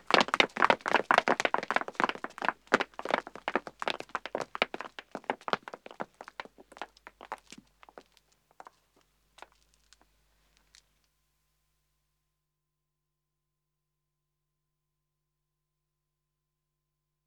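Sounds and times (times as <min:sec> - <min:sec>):
two men and two women running footsteps on pavement: 0:00.0 - 0:08.8.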